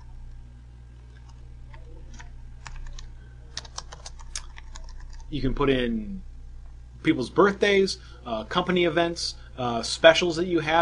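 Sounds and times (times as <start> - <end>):
low electrical hum: 0.0 - 10.8
typing on a computer keyboard into Microsoft Word: 1.1 - 5.3
speech: 5.3 - 6.3, 7.0 - 10.8.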